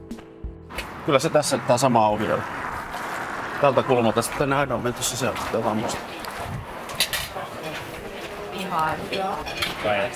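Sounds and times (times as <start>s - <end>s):
speech: 1.0s - 2.7s, 3.6s - 6.5s, 8.7s - 10.1s
overlapping chatter in a busy restaurant: 3.6s - 10.1s
dishes and cutlery clinking in a restaurant: 6.9s - 10.1s.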